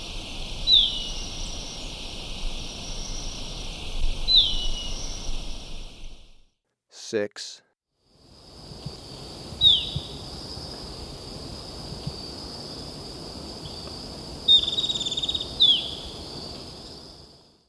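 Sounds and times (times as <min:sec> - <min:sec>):
insect drone: 0:00.0 - 0:06.4, 0:08.1 - 0:17.6
golden-faced tyrannulet whistling: 0:00.6 - 0:02.0, 0:02.8 - 0:06.1
speech: 0:07.1 - 0:07.6.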